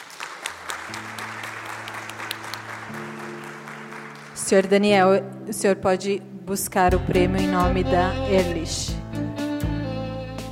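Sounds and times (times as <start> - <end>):
audience applause: 0.0 - 4.7
speech: 0.9 - 1.2, 4.5 - 9.0.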